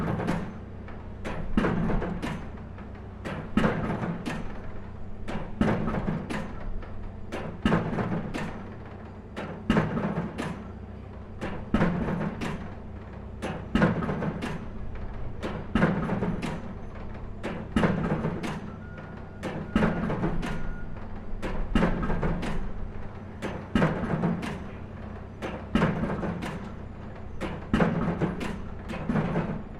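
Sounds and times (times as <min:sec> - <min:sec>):
construction site pile driver operating: 0:00.0 - 0:00.6, 0:01.2 - 0:29.7.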